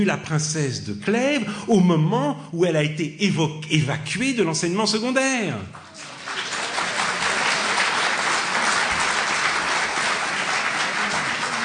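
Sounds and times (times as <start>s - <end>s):
speech: 0.0s - 5.8s
audience applause: 5.8s - 11.6s.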